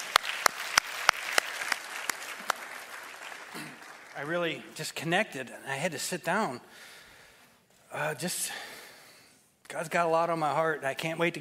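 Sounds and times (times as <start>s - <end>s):
audience applause: 0.0s - 4.6s
speech: 4.2s - 6.9s, 7.9s - 8.7s, 9.7s - 11.3s.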